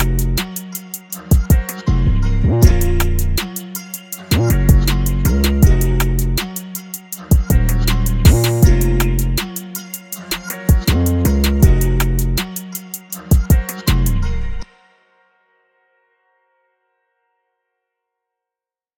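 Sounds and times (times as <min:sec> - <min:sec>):
music beat: 0:00.0 - 0:14.3.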